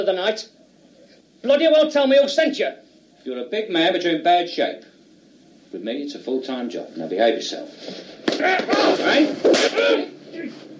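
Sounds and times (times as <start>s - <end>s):
speech: 0.0s - 0.6s, 1.4s - 4.9s, 5.7s - 10.7s
slaps to the face: 8.2s - 10.0s.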